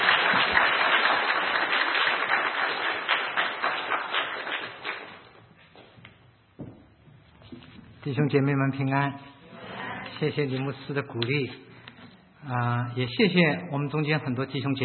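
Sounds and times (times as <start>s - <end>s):
audience clapping in welcome: 0.0s - 5.4s
speech: 8.1s - 9.3s, 10.2s - 11.7s, 12.4s - 14.8s.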